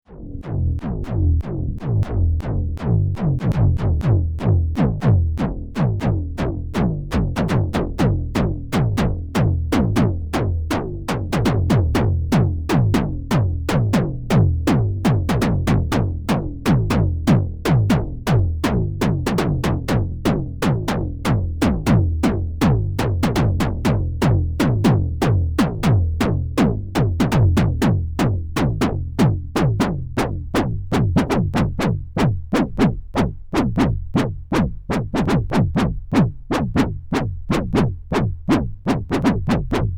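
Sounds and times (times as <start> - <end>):
bass: 0.0 - 39.9.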